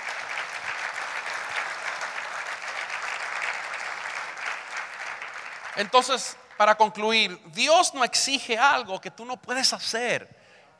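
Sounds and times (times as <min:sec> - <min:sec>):
audience applause: 0:00.0 - 0:06.6
speech: 0:05.8 - 0:10.4.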